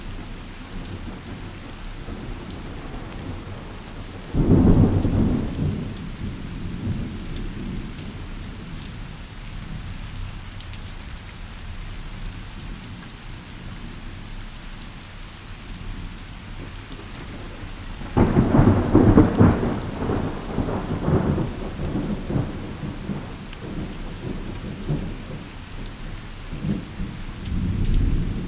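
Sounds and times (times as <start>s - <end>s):
thunderstorm: 0.9s - 8.6s, 16.5s - 28.4s.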